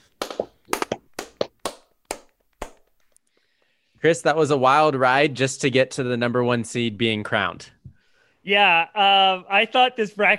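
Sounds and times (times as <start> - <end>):
hand clapping: 0.0 - 3.0
speech: 4.0 - 7.8, 8.4 - 10.3.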